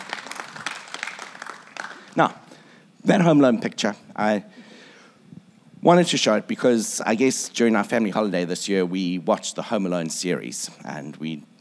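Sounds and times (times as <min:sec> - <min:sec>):
crowd applause: 0:00.0 - 0:02.2
speech: 0:02.2 - 0:02.4, 0:03.0 - 0:04.7, 0:05.8 - 0:11.5.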